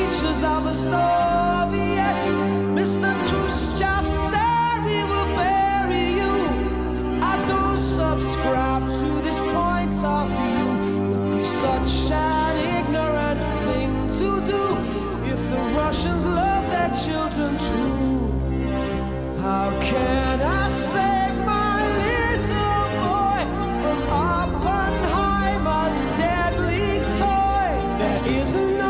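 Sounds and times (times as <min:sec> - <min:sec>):
rock music: 0:00.0 - 0:28.8.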